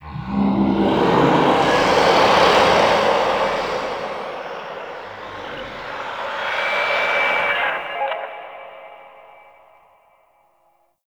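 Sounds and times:
distant infested low G drone: 0:00.0 - 0:09.5.

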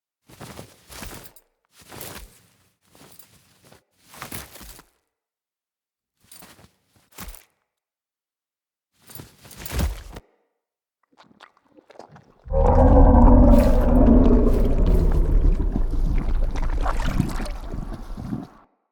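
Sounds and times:
eruption: 0:12.5 - 0:18.6.

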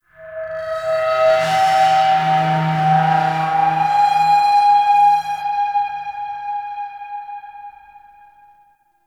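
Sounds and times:
modular synth ambient texture: 0:00.2 - 0:06.6.

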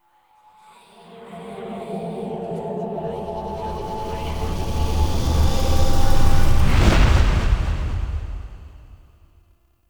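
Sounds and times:
cave intro stinger: 0:03.1 - 0:09.0.

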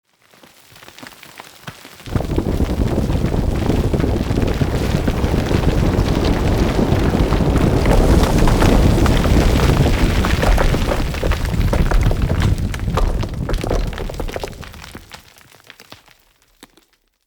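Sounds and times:
cave collapsing under city: 0:02.1 - 0:15.3.

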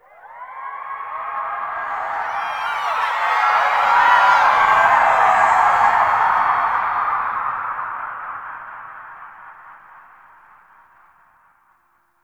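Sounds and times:
echoing ambience: 0:00.2 - 0:08.2.

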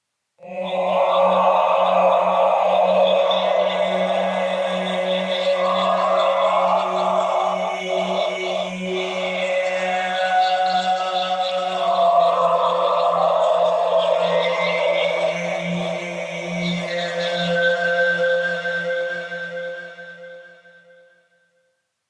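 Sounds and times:
choir singing: 0:00.4 - 0:20.2.

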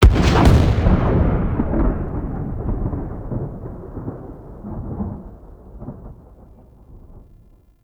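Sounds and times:
Archwing space explosion: 0:00.0 - 0:05.4.

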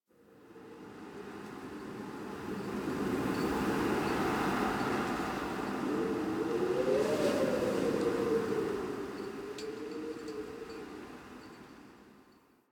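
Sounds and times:
exterior winter wind: 0:00.1 - 0:12.7.

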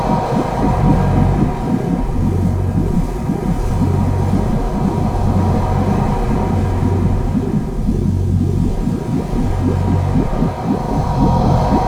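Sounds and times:
aura sound loop: 0:00.0 - 0:11.8.

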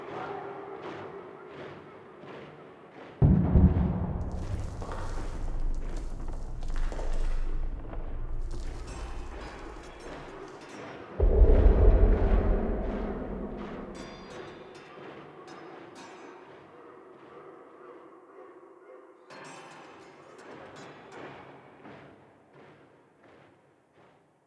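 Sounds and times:
distant battle heard from a castle interior: 0:03.2 - 0:10.5, 0:11.2 - 0:14.4.

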